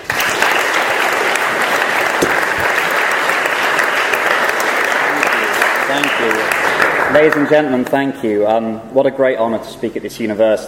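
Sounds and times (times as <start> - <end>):
audience applause: 0.0 - 7.8
speech: 7.1 - 10.6.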